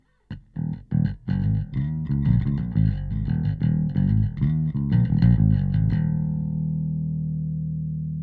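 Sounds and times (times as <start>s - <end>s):
bass: 0.0s - 8.2s.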